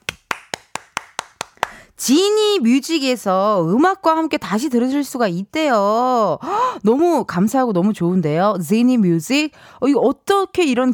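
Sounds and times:
studio audience clapping: 0.0s - 1.9s
speech: 2.0s - 10.9s.

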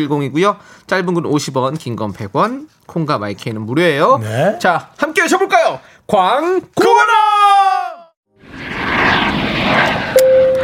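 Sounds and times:
speech: 0.0s - 7.4s
airplane landing jet-engine roar sound effect: 8.3s - 10.6s
falling tonal sweep: 8.3s - 10.6s.

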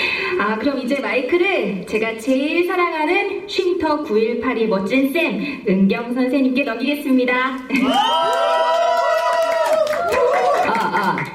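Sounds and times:
speech: 0.4s - 8.8s
audience cheering: 7.8s - 11.2s.

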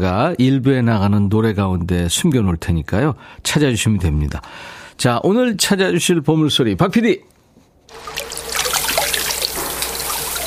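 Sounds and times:
speech: 0.0s - 7.3s
water splashing and pouring in a bathhouse: 7.9s - 10.4s.

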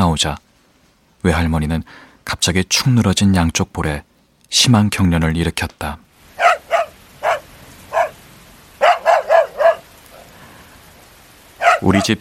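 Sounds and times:
speech: 0.0s - 0.4s, 1.2s - 6.0s, 11.8s - 12.1s
dog barking fiercely: 6.3s - 10.4s, 11.5s - 12.1s.

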